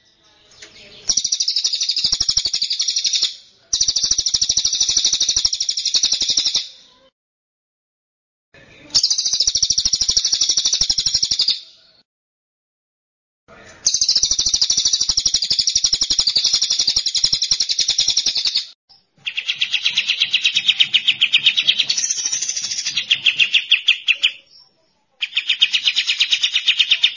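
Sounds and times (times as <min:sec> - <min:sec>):
bird chattering trill: 0:01.1 - 0:06.8, 0:09.0 - 0:11.6, 0:13.9 - 0:24.6, 0:25.2 - 0:27.1.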